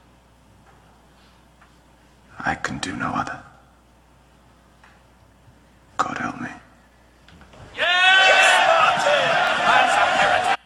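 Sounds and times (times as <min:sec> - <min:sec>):
speech: 0:02.4 - 0:03.5
angry crowd shouting for execution: 0:07.8 - 0:10.6.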